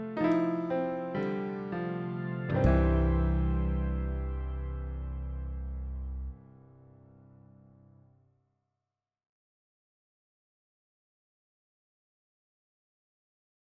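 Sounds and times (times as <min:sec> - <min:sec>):
Finnish song: 0:00.0 - 0:06.4.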